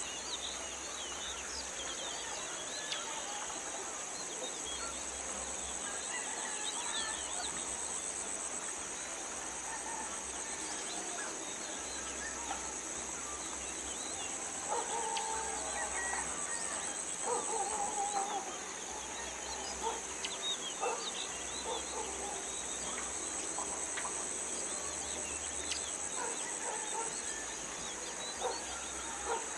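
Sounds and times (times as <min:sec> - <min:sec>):
birds in a village: 0:00.0 - 0:29.5
insects in a village: 0:00.0 - 0:29.5
dogs in a village: 0:19.8 - 0:20.1, 0:20.8 - 0:23.0, 0:26.1 - 0:27.3, 0:28.4 - 0:29.5.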